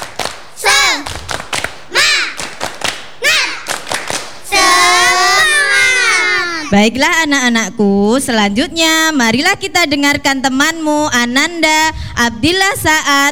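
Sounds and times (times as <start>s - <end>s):
rhythmic hand claps: 0.0s - 6.7s
children chanting: 0.0s - 6.8s
children shouting together: 0.0s - 6.8s
speech: 6.7s - 13.3s.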